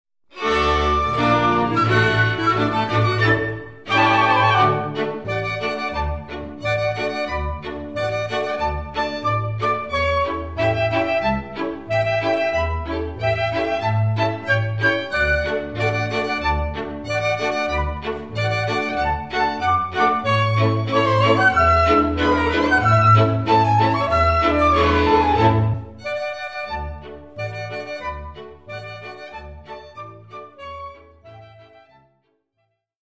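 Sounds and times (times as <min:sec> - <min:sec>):
historic flute march music: 0:00.3 - 0:32.2.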